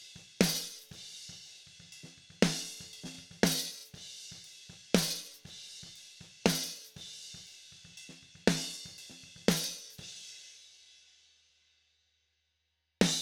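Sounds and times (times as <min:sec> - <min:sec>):
snare drum: 0:00.0 - 0:01.0, 0:02.0 - 0:04.0, 0:04.7 - 0:05.9, 0:06.5 - 0:07.0, 0:07.8 - 0:10.0, 0:13.0 - 0:13.2.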